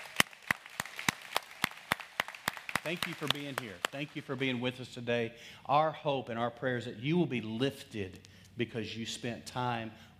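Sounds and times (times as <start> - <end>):
audience rhythmic hand clapping for first-time guests: 0.0 - 4.5
speech: 2.8 - 10.1.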